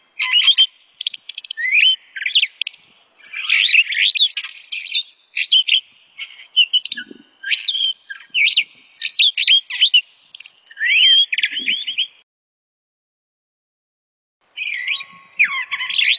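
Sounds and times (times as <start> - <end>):
starling singing: 0.2 - 12.2, 14.6 - 16.1.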